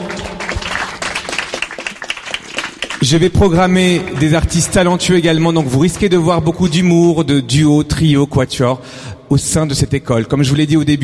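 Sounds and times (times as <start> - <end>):
crowd applause: 0.0 - 6.5
speech: 3.0 - 11.0.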